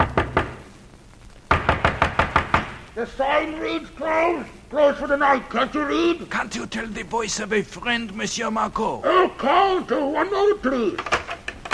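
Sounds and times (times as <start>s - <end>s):
knuckles knocking on an innkeeper's door in a port town at night: 0.0s - 0.6s, 1.5s - 2.7s
speech: 3.0s - 11.2s.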